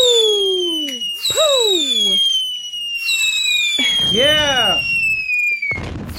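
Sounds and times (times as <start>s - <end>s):
fireworks crackling bursts: 0.0s - 6.1s
shrill whistling firework rockets: 0.0s - 6.1s.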